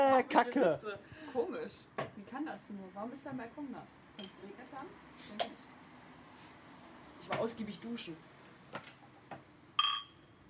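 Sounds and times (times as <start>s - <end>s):
speech: 0.2s - 5.8s, 7.2s - 9.5s
glasses clinking in a toast: 9.8s - 10.2s.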